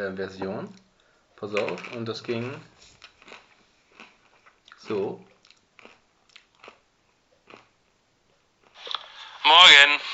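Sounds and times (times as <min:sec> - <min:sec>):
speech: 0:00.0 - 0:03.0, 0:04.8 - 0:05.3, 0:09.5 - 0:10.1
person chewing while eating: 0:01.6 - 0:07.9, 0:08.6 - 0:09.2.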